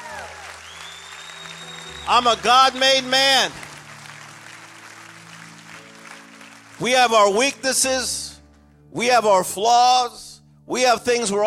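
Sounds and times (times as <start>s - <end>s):
audience clapping hands: 0.0s - 7.9s
speech: 2.1s - 3.6s, 6.8s - 8.2s, 8.9s - 11.4s.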